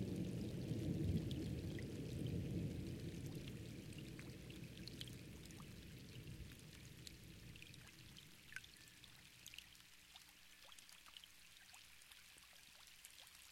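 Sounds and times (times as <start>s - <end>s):
thunderstorm: 0.0s - 7.6s.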